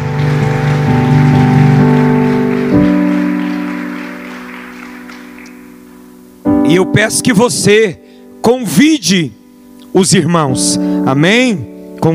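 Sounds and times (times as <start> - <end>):
audience applause: 0.0 - 5.9
sustained keyboard chords: 0.0 - 12.1
speech: 6.7 - 12.1.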